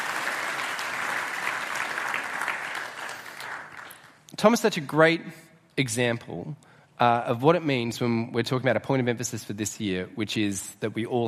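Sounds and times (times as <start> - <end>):
audience applauding: 0.0 - 4.2
speech: 4.4 - 11.2.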